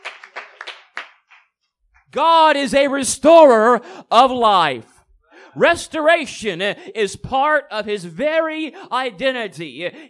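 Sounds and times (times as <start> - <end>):
audience clapping hands: 0.0 - 2.3
speech: 2.1 - 4.9, 5.6 - 10.0.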